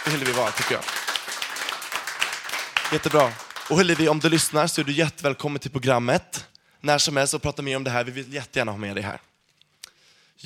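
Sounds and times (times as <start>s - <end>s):
speech: 0.0s - 1.1s, 2.9s - 9.3s
applause from a small group: 0.0s - 5.0s.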